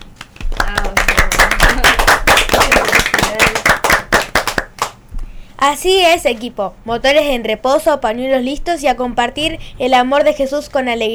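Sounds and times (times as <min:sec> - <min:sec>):
applause: 0:00.0 - 0:05.0
speech: 0:05.6 - 0:11.1.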